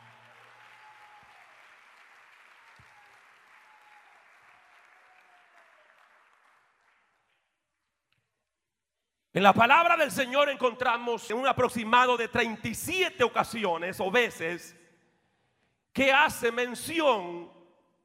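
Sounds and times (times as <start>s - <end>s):
audience applauding: 0.0s - 8.0s
speech: 9.4s - 14.8s, 16.0s - 17.6s.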